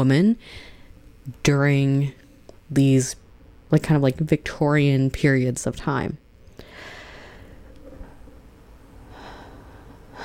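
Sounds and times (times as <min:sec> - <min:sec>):
speech: 0:00.0 - 0:00.7, 0:01.3 - 0:06.2
deep breath: 0:00.4 - 0:01.0, 0:06.6 - 0:08.1, 0:08.9 - 0:10.2.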